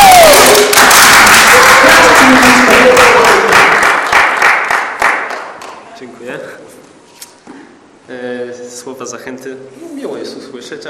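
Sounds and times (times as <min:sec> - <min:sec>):
audience clapping: 0:00.0 - 0:05.9
speech: 0:09.1 - 0:10.8.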